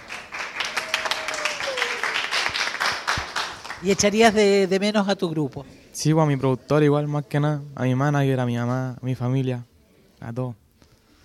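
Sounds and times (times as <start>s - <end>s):
applause: 0.0s - 4.3s
speech: 3.8s - 10.6s.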